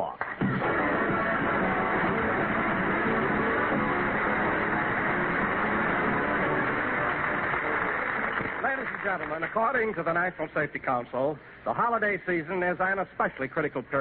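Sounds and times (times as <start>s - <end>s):
vacuum cleaner running: 0.6s - 8.7s
speech: 9.1s - 13.9s.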